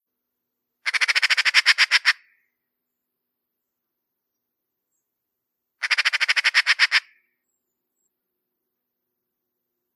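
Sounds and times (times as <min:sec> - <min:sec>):
Eurasian magpie chattering: 0:00.9 - 0:02.2, 0:05.8 - 0:07.2.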